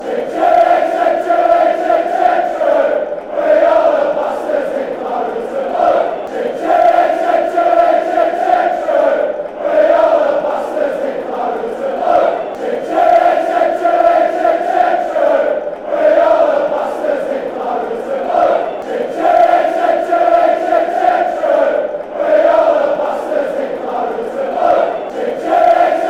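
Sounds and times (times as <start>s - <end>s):
football fans chanting: 0.0s - 26.0s.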